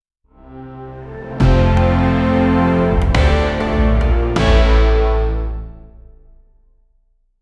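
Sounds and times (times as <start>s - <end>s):
Korean king entrance ceremonial music: 0.4s - 6.3s.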